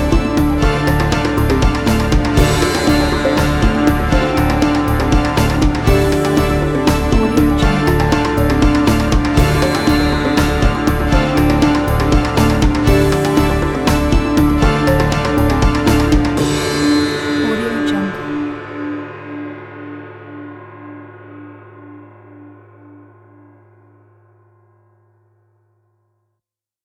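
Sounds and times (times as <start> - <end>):
dark Asian cinematic music: 0.0 - 21.5.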